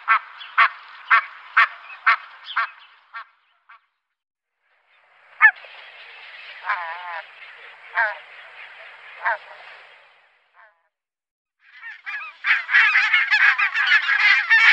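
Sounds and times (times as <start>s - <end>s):
barnacle goose barking yelps: 0.0s - 3.9s, 5.4s - 5.6s, 7.9s - 8.2s, 9.2s - 9.6s, 11.8s - 14.7s.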